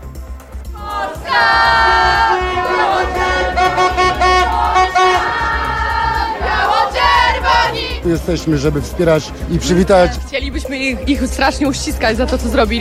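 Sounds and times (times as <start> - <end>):
crowd of fans cheering Olympic silver medalists at Warsaw's Chopin Airport: 0.8 - 7.9
speech: 8.1 - 12.8.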